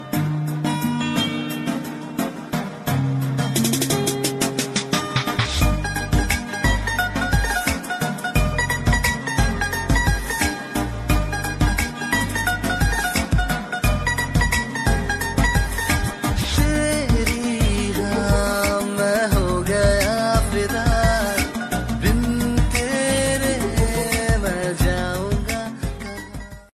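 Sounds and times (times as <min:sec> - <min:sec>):
Bollywood ringtone: 0:00.0 - 0:26.7.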